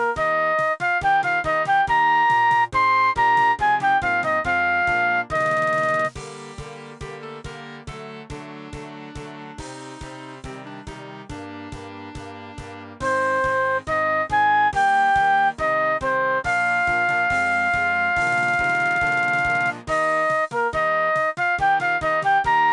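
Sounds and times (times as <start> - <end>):
flute: 0.0 - 6.6, 13.0 - 22.7.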